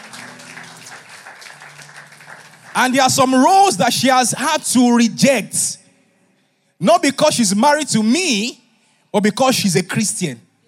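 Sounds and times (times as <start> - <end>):
audience clapping: 0.0 - 3.8
speech: 2.8 - 5.8, 6.8 - 10.5.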